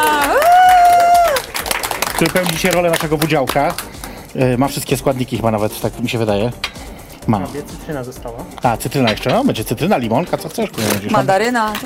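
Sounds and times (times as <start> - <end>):
cheering: 0.0 - 1.8
applause: 0.0 - 4.2
speech: 2.2 - 11.8.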